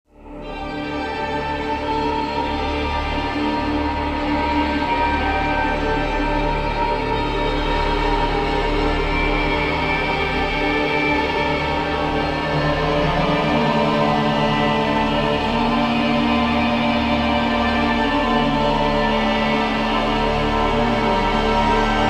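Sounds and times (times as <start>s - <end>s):
ambient music: 0.2s - 22.0s.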